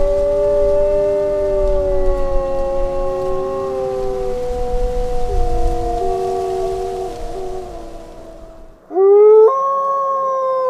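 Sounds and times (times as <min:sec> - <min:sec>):
wolf howling: 0:00.0 - 0:10.6.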